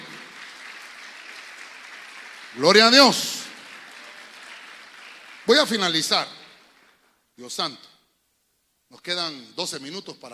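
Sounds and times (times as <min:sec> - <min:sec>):
audience applauding: 0:00.0 - 0:07.2
speech: 0:02.5 - 0:03.4, 0:05.5 - 0:06.4, 0:07.4 - 0:07.9, 0:08.9 - 0:10.3.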